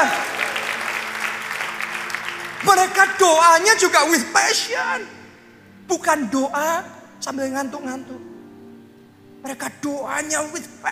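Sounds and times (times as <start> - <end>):
audience applause: 0.0 - 4.2
speech: 2.7 - 5.2, 5.9 - 8.2, 9.4 - 10.9.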